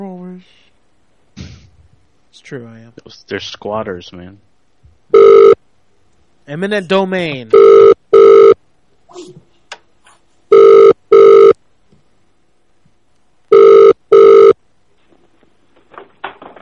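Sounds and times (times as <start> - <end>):
speech: 0.0 - 0.6, 2.4 - 4.5, 6.5 - 8.0
telephone ringing with bright electronic trills: 5.1 - 5.6, 7.5 - 8.6, 10.5 - 11.6, 13.5 - 14.6.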